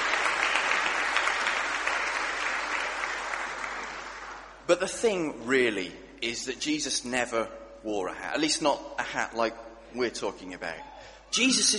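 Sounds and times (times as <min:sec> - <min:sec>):
audience applause: 0:00.0 - 0:04.6
speech: 0:04.7 - 0:11.7.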